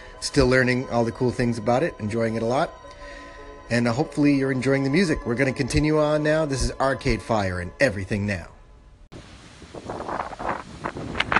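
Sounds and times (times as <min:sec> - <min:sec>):
speech: 0:00.2 - 0:02.8, 0:03.7 - 0:08.5
gusty wind buffeting the microphone in a Massachusetts neighborhood: 0:09.2 - 0:11.3.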